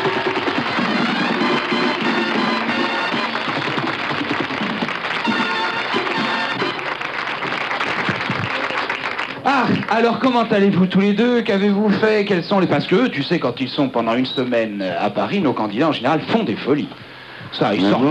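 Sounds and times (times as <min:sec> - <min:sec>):
crowd applause: 0:00.0 - 0:10.8
speech: 0:09.9 - 0:18.1.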